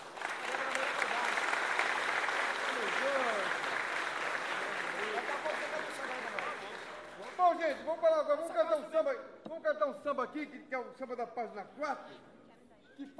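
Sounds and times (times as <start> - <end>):
audience applause: 0.0 - 7.6
speech: 7.8 - 12.4, 13.0 - 13.1.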